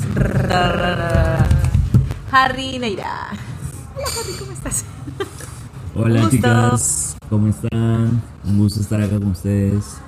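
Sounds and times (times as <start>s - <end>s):
drum roll imitated by a voice: 0.0s - 2.0s
speech: 0.2s - 1.2s, 2.3s - 3.4s, 4.0s - 5.0s, 6.0s - 10.0s.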